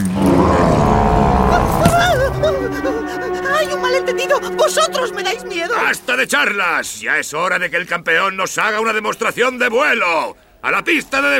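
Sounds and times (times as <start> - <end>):
terrifying roar: 0.0 - 5.2
speech: 2.7 - 11.3.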